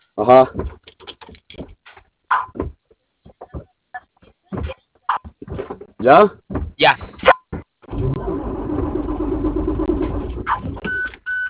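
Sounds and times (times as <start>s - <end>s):
speech: 0.2s - 0.8s, 6.0s - 7.0s
engine cranking and failing to start: 7.8s - 11.2s.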